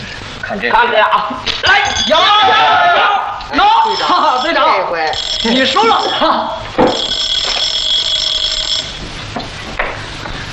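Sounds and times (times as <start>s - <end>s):
speech: 0.5s - 7.3s
telephone ringing with an electronic bell tone: 3.6s - 9.2s.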